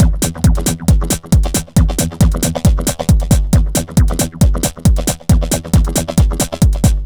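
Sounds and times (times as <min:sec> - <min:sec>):
dance drum loop: 0:00.0 - 0:07.0.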